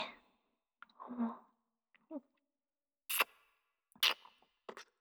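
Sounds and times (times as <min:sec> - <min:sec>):
ear licking: 0:03.1 - 0:03.3, 0:04.0 - 0:04.9.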